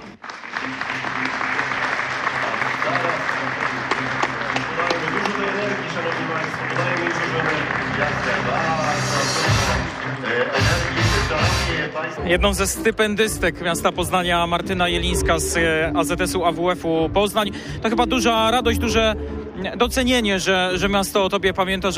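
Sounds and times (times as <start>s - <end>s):
large audience applauding: 0.0s - 11.8s
speech: 10.1s - 21.9s.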